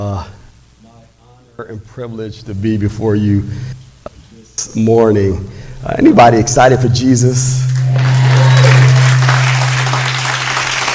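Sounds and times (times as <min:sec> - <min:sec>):
speech: 0:00.0 - 0:00.4, 0:01.6 - 0:03.8, 0:04.6 - 0:08.1
small audience clapping: 0:07.7 - 0:10.9.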